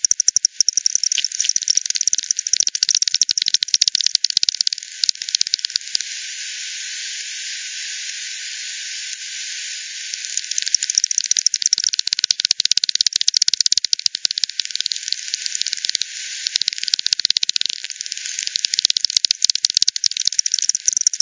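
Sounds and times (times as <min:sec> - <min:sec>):
bat echolocation clicks made audible: 0:00.0 - 0:06.1, 0:10.1 - 0:21.2
faint hiss: 0:05.8 - 0:10.6, 0:15.2 - 0:16.8.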